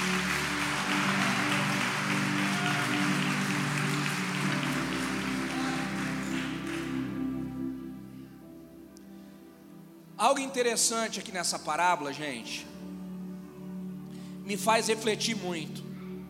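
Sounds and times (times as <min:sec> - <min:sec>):
audience applause: 0:00.0 - 0:07.4
low sustained keyboard chord: 0:00.0 - 0:10.1
speech: 0:10.2 - 0:12.8, 0:14.5 - 0:15.9.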